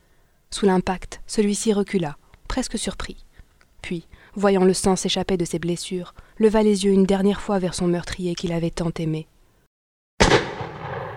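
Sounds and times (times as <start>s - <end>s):
speech: 0.6s - 3.2s, 3.8s - 9.3s
gunshots from a revolver: 10.2s - 11.1s.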